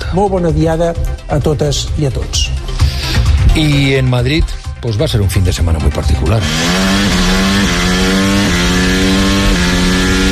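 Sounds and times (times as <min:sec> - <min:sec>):
speech: 0:00.1 - 0:02.6, 0:03.6 - 0:07.8
Formula 1 car engines racing on an urban street circuit: 0:06.3 - 0:10.3.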